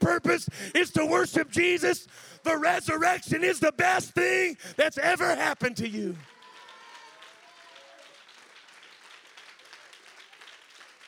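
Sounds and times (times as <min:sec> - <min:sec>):
speech: 0:00.2 - 0:06.3
audience clapping: 0:05.2 - 0:11.0.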